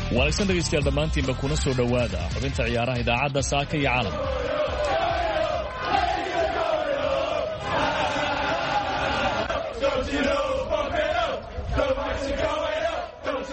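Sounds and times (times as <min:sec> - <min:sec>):
speech: 0:00.1 - 0:04.8
Leeds United football supporters roaring at their home stadium: 0:03.7 - 0:13.5.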